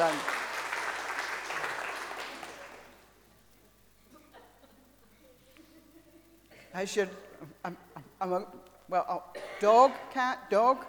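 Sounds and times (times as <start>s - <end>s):
audience applause: 0.0s - 3.0s
speech: 6.8s - 10.8s.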